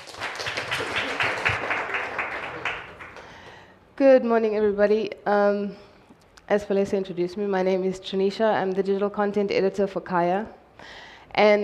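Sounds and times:
audience applause: 0.0s - 3.6s
speech: 4.0s - 5.9s, 6.5s - 11.6s.

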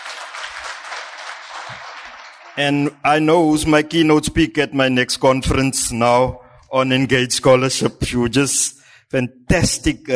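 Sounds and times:
academic conference audience applauding a panel: 0.0s - 2.6s
speech: 2.6s - 10.1s.

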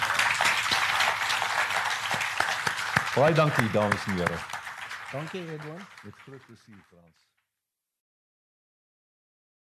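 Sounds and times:
audience applause: 0.0s - 7.2s
speech: 3.2s - 4.5s, 5.1s - 7.3s.

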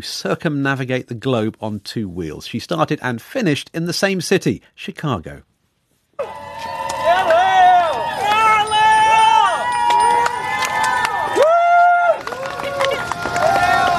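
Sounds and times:
speech: 0.0s - 5.5s
friends and family cheering a cyclist across the finish line in Chicago: 6.2s - 13.9s
high pitch-bending whoops and shouts: 6.2s - 13.9s.

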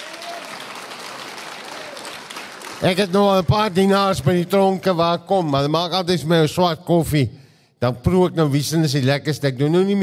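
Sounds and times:
audience applause: 0.0s - 4.0s
speech: 2.8s - 10.0s.

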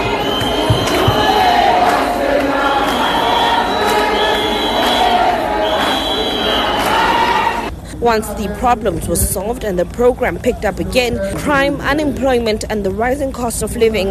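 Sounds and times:
crowd chanting and singing: 0.0s - 7.8s
speech: 8.1s - 14.0s.

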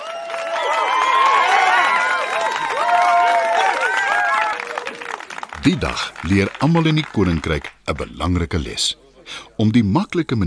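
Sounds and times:
spectators cheering: 0.0s - 7.7s
speech: 5.6s - 10.4s.

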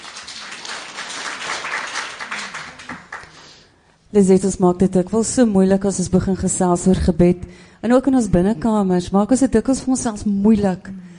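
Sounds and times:
audience applause: 0.0s - 3.4s
speech: 4.1s - 11.0s.

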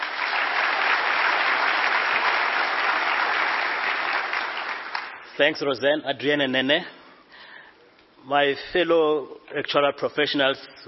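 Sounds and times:
audience applause: 0.0s - 5.4s
speech: 5.4s - 7.0s, 8.2s - 10.8s.

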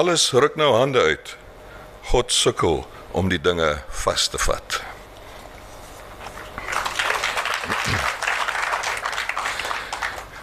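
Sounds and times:
speech: 0.0s - 1.4s, 2.0s - 4.9s
audience clapping: 6.4s - 10.4s.

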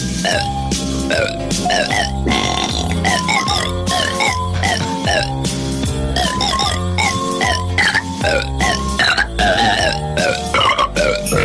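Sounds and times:
burps belching out a Christmas song: 0.2s - 5.5s, 6.1s - 11.4s.

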